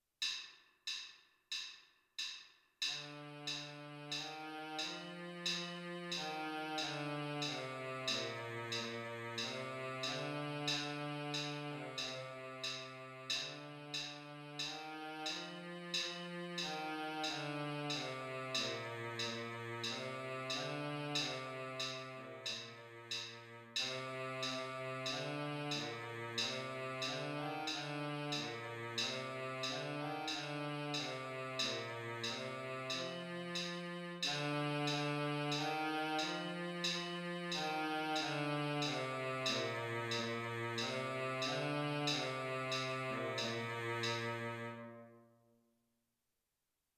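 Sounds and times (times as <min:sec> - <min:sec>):
baritone sax: 0:03.0 - 0:45.2.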